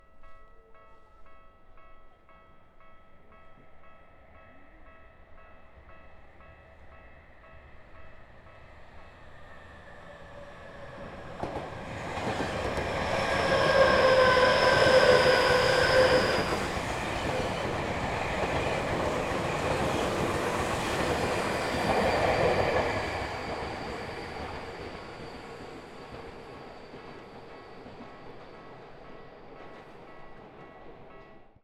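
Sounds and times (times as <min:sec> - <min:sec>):
train: 0:00.0 - 0:31.6.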